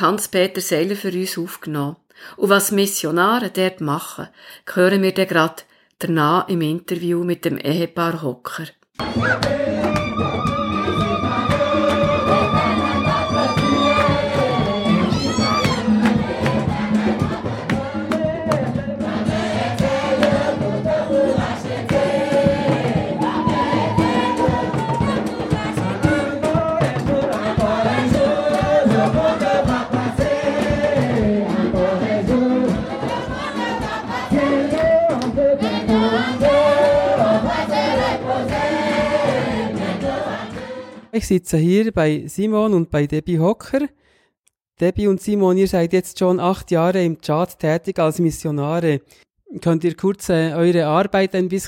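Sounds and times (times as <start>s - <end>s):
speech: 0.0s - 10.4s, 41.2s - 44.0s, 44.8s - 51.6s
steady drumming: 9.0s - 40.8s
crowd singing together in a church service: 9.0s - 41.1s.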